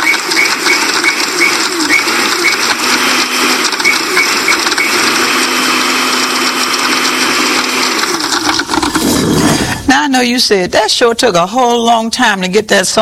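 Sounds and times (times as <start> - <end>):
kitchen blender running: 0.0 - 9.8
speech: 10.1 - 13.0.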